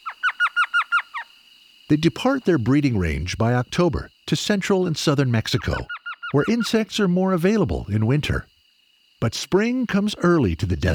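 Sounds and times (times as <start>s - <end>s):
Elf Owl yelping call: 0.0s - 1.4s, 5.6s - 6.9s
speech: 1.9s - 8.5s, 9.2s - 10.9s.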